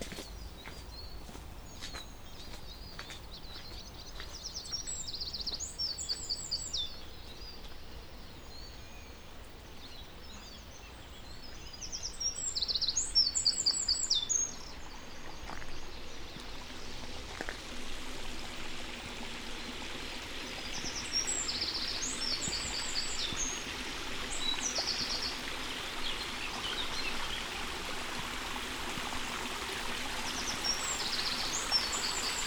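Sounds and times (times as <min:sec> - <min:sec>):
Gnoll Park soundscape: 0:00.0 - 0:32.4.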